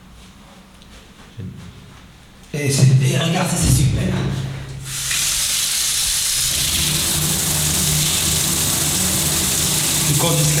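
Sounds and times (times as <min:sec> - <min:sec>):
speech: 0:02.6 - 0:04.5, 0:10.2 - 0:10.5
shower running with hot water: 0:04.8 - 0:10.5.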